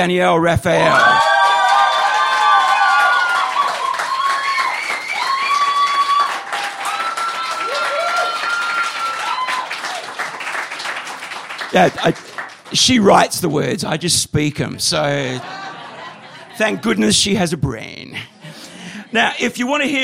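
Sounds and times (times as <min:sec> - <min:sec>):
speech: 0:00.0 - 0:01.2, 0:11.7 - 0:15.6, 0:16.6 - 0:18.1, 0:19.1 - 0:20.0
audience applause: 0:00.8 - 0:13.2
laughter: 0:15.0 - 0:17.5.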